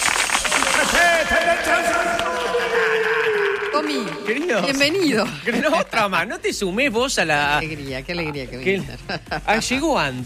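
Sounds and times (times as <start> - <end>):
audience applause: 0.0 - 5.4
laughter: 0.5 - 6.3, 7.4 - 10.2
speech: 3.8 - 10.2.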